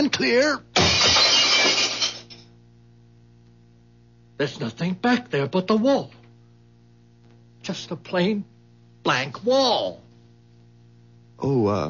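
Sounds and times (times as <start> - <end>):
speech: 0.0 - 0.7, 4.4 - 6.2, 7.7 - 10.0, 11.4 - 11.8
glass pane broken with a gun butt: 0.8 - 2.5.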